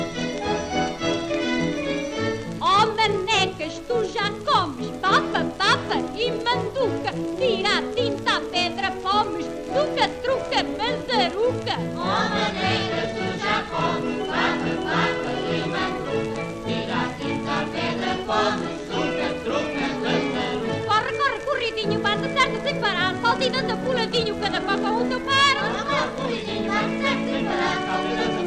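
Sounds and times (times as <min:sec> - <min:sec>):
corridinho folk dance music: 0:00.0 - 0:28.4.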